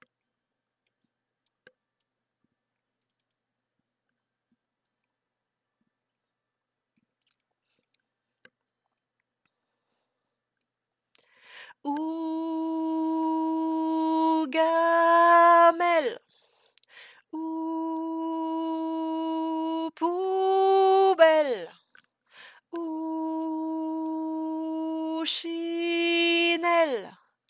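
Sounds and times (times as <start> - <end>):
soprano singing: 11.8 - 16.2, 17.3 - 21.8, 22.7 - 27.2.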